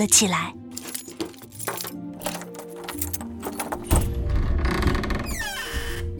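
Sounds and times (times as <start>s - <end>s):
speech: 0.0s - 0.6s
keys jangling: 0.7s - 4.2s
door being unlocked: 0.7s - 6.1s.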